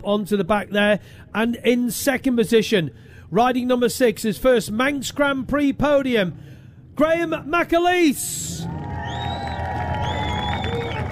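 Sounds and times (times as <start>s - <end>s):
speech: 0.0s - 9.0s
crowd cheering for a rider on the podium after a Manx Grand Prix motorcycle race: 8.4s - 11.0s.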